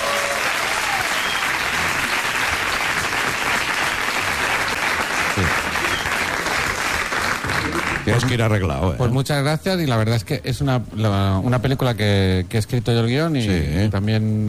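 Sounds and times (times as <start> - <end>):
audience applause: 0.0 - 8.5
speech: 8.1 - 14.4.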